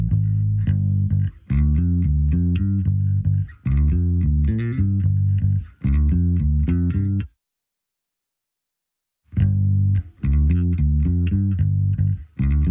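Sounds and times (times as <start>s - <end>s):
bass playing alone: 0.0s - 7.3s, 9.3s - 12.6s.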